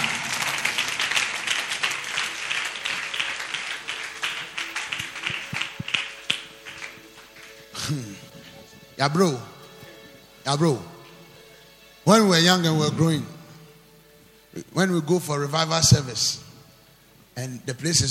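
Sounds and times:
people clapping: 0:00.0 - 0:08.9
speech: 0:09.0 - 0:09.5, 0:10.4 - 0:10.9, 0:12.0 - 0:13.4, 0:14.8 - 0:16.4, 0:17.4 - 0:18.0.

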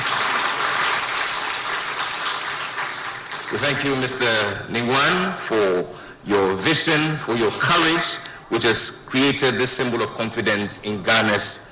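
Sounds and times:
audience applause: 0:00.0 - 0:04.0
speech: 0:03.5 - 0:11.7.

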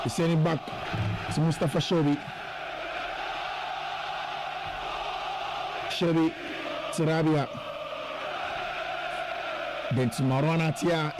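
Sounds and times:
speech: 0:00.0 - 0:02.4, 0:06.0 - 0:07.7, 0:09.9 - 0:11.1
crowd cheering for the Egyptians: 0:00.0 - 0:11.1.

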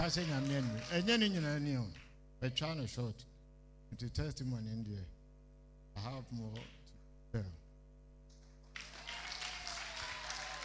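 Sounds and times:
audience clapping: 0:00.0 - 0:02.2, 0:08.3 - 0:10.6
speech: 0:00.0 - 0:03.3, 0:03.9 - 0:05.2, 0:06.0 - 0:07.6.

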